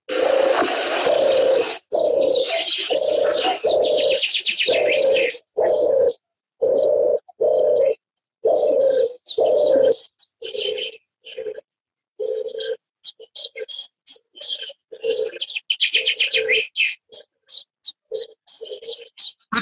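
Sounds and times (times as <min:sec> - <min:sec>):
European turtle dove cooing: 0:00.0 - 0:13.7, 0:14.5 - 0:17.3, 0:18.1 - 0:19.6.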